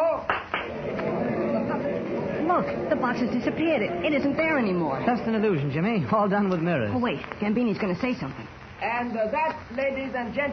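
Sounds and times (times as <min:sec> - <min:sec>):
hand claps: 0:00.3 - 0:01.1
low murmur of voices: 0:00.6 - 0:08.5
speech: 0:02.6 - 0:10.5.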